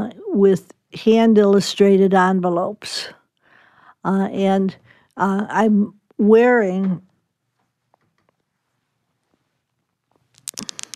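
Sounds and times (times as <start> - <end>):
speech: 0.4 - 3.2, 4.0 - 7.1
amethyst crystals on leather thongs clicking: 10.3 - 10.9.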